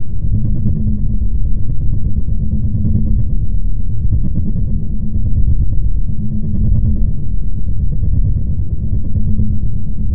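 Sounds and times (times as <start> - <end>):
ambience: 0.0 - 10.1.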